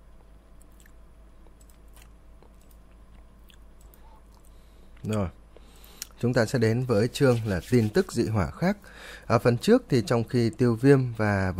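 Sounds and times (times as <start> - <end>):
speech: 5.0 - 5.4, 6.2 - 11.5
mouse scratching and rustling in the house: 6.9 - 8.3.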